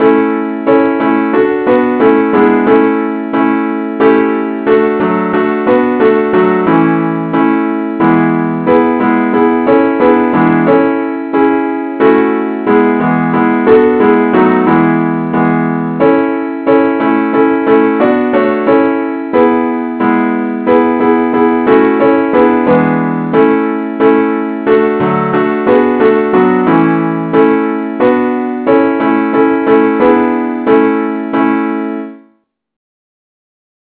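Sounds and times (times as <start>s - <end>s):
musical accompaniment in A: 0.0s - 32.1s.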